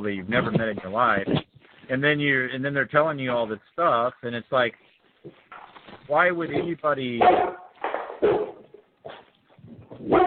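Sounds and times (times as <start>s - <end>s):
speech: 0.0s - 5.4s, 6.1s - 7.5s, 8.2s - 8.5s
dog barking: 7.2s - 9.3s, 10.0s - 10.2s.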